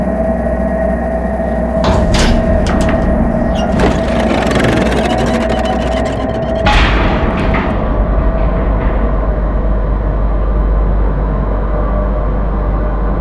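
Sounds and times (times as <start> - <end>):
industrial ambience: 0.1 - 13.0
industrial sound effects: 1.8 - 7.7.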